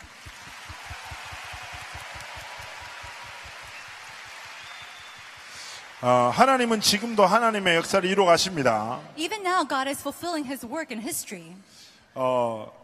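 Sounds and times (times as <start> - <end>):
audience applause: 0.0 - 8.9
speech: 6.0 - 12.8.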